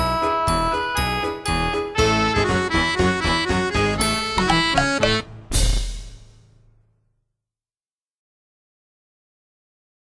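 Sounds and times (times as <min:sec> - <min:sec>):
instrumental music: 0:00.0 - 0:06.6.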